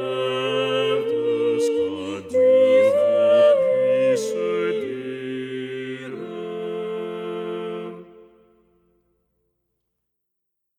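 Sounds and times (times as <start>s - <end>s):
choir singing without the alto part: 0.0s - 8.5s.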